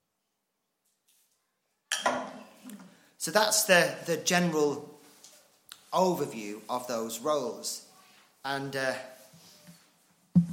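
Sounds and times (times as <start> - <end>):
glass clinking while getting water: 1.9 - 2.4
speech: 3.2 - 4.9, 5.9 - 9.1.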